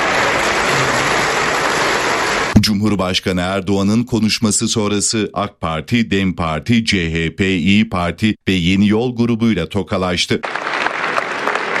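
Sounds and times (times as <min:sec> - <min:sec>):
AK Party parliamentary group applauding Erdoğan in the assembly hall: 0:00.0 - 0:02.6, 0:10.4 - 0:11.7
speech: 0:02.7 - 0:10.7.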